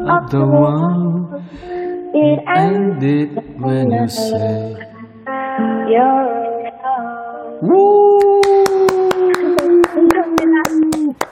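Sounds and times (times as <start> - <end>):
speech: 0.1 - 4.9, 5.6 - 6.4
team's enthusiastic seal-style clapping: 8.2 - 11.3.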